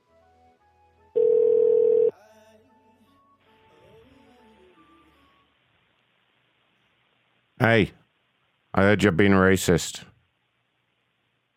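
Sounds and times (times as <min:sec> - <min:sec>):
telephone electronic tone for an incoming call from a blocked number: 0:01.2 - 0:02.1
speech: 0:07.6 - 0:08.0, 0:08.8 - 0:10.1.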